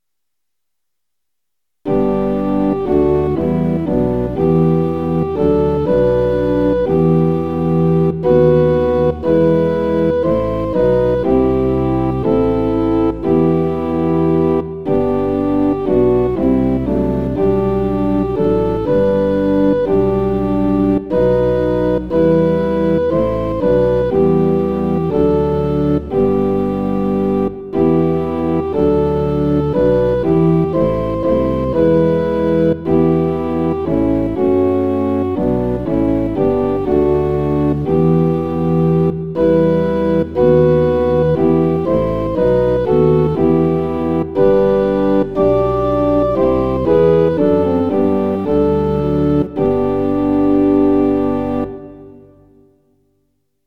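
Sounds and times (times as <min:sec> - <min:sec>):
organ: 0:01.9 - 0:52.7.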